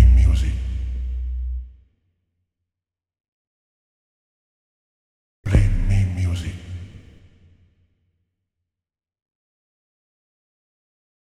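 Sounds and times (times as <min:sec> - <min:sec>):
bass sound effect: 0:00.0 - 0:01.7, 0:05.5 - 0:06.1.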